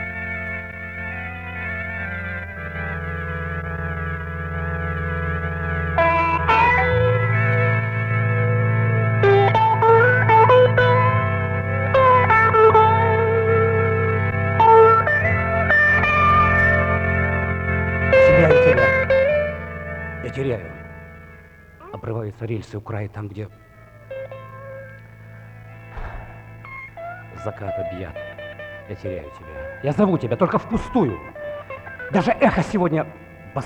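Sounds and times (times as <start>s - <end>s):
theatre show backing soundtrack: 0.0s - 33.6s
speech: 22.6s - 23.7s, 27.4s - 31.4s, 32.1s - 33.6s.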